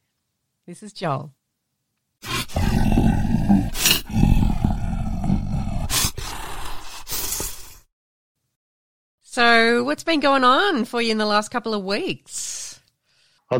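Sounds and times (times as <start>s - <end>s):
speech: 0.7s - 1.4s, 9.4s - 12.7s
deep rumbling monster growl: 2.2s - 7.8s.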